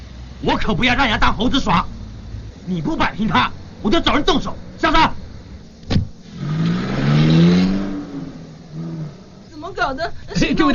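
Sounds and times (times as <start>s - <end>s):
car engine revving: 0.0s - 9.8s
speech: 0.4s - 2.0s, 2.6s - 5.2s, 9.8s - 10.7s
sharp knock: 5.8s - 6.1s.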